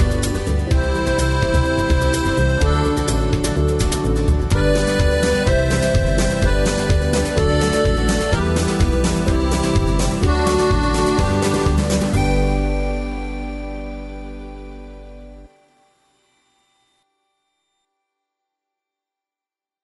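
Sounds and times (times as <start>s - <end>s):
square dance music rhythm track: 0.0s - 15.5s.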